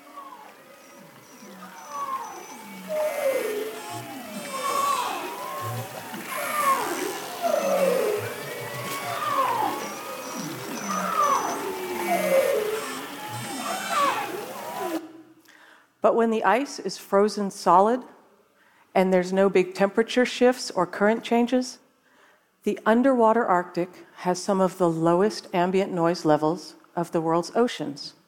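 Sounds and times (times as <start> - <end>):
Arctic marine mammals calling underwater in spring: 0.0 - 15.1
speech: 16.0 - 18.1, 19.0 - 21.8, 22.6 - 28.2.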